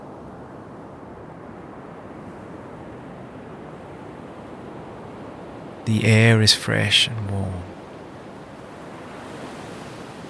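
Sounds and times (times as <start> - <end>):
ocean waves rolling onto the shore: 0.0 - 10.2
speech: 5.8 - 7.8.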